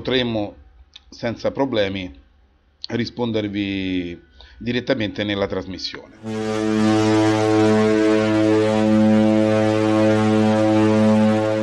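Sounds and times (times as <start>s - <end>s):
speech: 0.0s - 2.2s, 2.8s - 8.3s
ship's horn blast: 6.1s - 11.6s.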